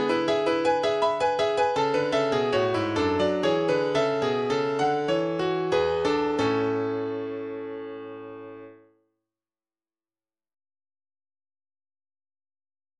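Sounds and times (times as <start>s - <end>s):
MIDI piano: 0.0s - 9.0s.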